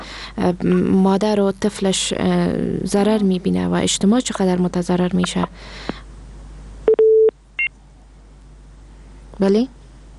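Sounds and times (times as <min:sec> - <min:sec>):
speech: 0:00.4 - 0:06.0, 0:09.4 - 0:09.8
electronic telephone line tones as a call disconnects: 0:06.9 - 0:07.3.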